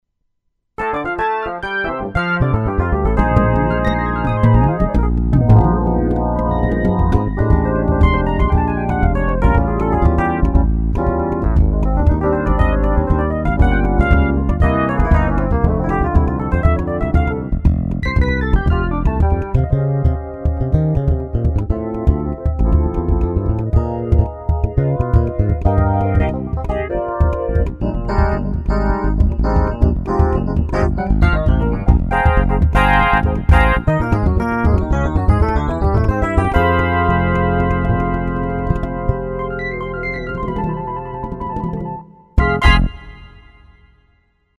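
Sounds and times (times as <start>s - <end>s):
Korg Z1 synthesizer: 0.8s - 43.8s.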